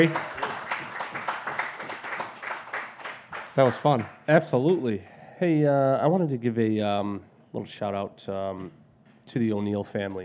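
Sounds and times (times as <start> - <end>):
speech: 0.0 - 0.3, 3.6 - 10.2
audience applause for a guest at the close of an interview: 0.0 - 4.1.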